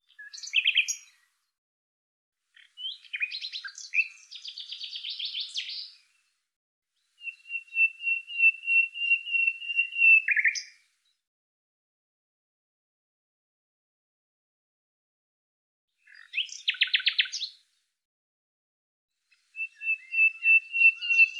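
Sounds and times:
bird singing chattering trills and short whistled notes: 0.0s - 1.2s, 2.6s - 6.1s, 7.1s - 10.8s, 16.0s - 17.6s, 19.3s - 21.3s.

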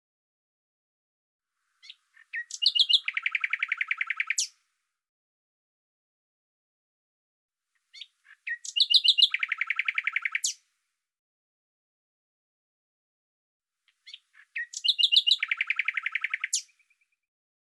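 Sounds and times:
bird song: 1.6s - 4.7s, 7.7s - 10.8s, 13.8s - 17.3s.

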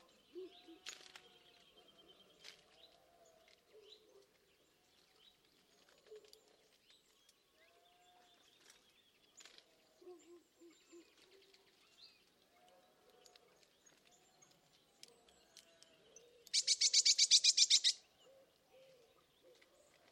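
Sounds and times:
bird buzzy pulsed call: 16.6s - 18.0s.

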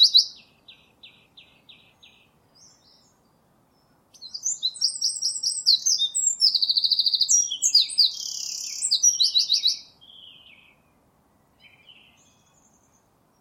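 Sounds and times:
bird chirping: 0.0s - 13.3s.

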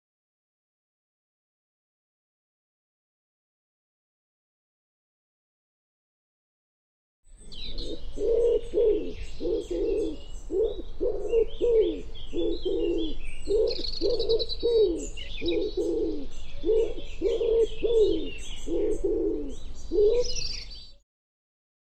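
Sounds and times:
bird cooing: 7.4s - 21.0s.

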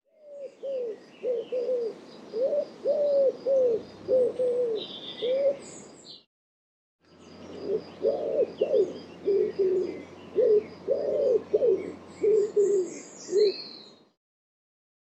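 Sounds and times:
bird cooing: 0.1s - 5.8s, 7.4s - 13.9s.

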